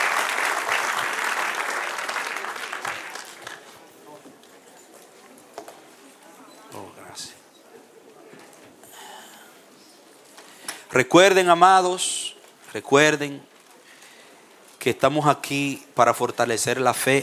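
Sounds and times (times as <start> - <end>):
audience applauding: 0.0 - 3.9
speech: 11.0 - 13.5, 14.8 - 17.2.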